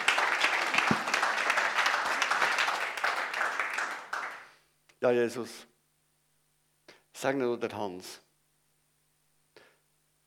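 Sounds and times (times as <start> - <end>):
crowd applause: 0.0 - 4.4
speech: 5.0 - 5.7, 7.2 - 8.2.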